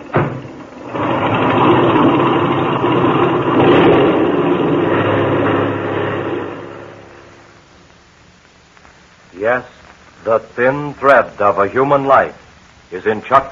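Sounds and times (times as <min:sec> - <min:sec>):
airplane engine revving: 0:00.7 - 0:07.7
speech: 0:09.5 - 0:13.5.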